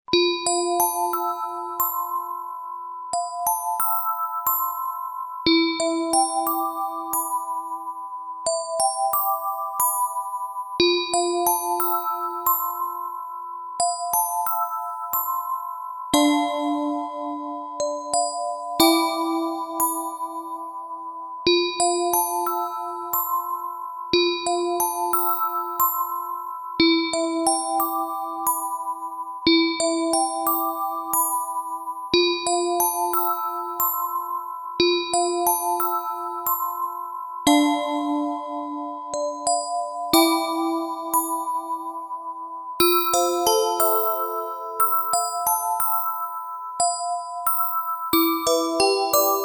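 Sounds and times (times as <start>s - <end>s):
music box: 0.1s - 49.4s.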